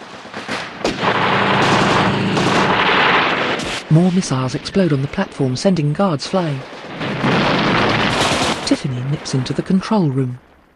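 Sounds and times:
machine gun turrets firing from an oil rig: 0.0 - 3.9, 6.6 - 8.8
helicopters passing: 0.0 - 9.8
speech: 3.9 - 7.1, 8.7 - 10.5.

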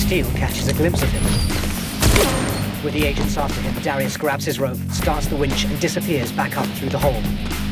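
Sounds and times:
speech: 0.1 - 7.6
gunfire aimed upward through a hole: 2.0 - 2.8.

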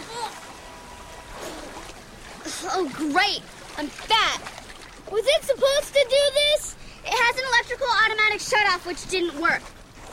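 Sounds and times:
water splashing as children in inflated red suits break the surface: 0.0 - 10.1
speech: 2.6 - 10.1.

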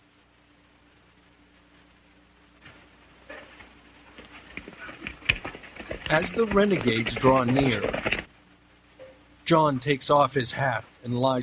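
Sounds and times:
horses galloping into a ravine: 3.4 - 8.3
speech: 6.1 - 8.2, 9.5 - 11.4.

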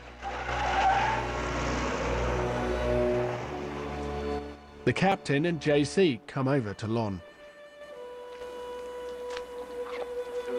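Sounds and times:
police car engine rumbling as it drives away: 0.0 - 5.3
speech: 4.9 - 7.3.

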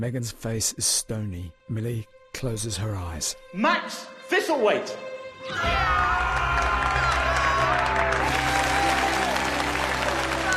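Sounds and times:
speech: 0.0 - 6.4
people shouting: 5.5 - 10.5
crowd applauding as the winner of a singing contest is announced: 5.7 - 10.5.

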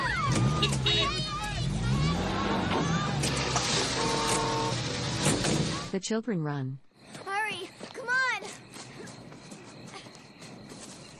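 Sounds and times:
cars starting and driving off: 0.0 - 6.0
speech: 6.0 - 6.9.

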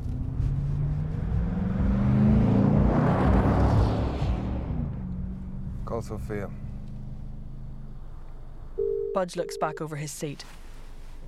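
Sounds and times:
white SUV engine rumbling as it drives past on an unlit street: 0.0 - 8.8
speech: 6.0 - 6.7, 9.2 - 10.6.

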